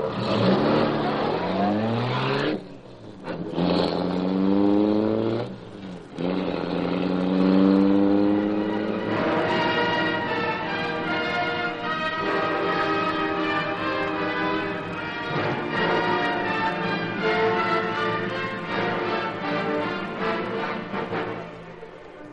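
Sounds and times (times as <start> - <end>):
Black Beauty car engine roaring to life and speeding off: 0.0 - 22.3.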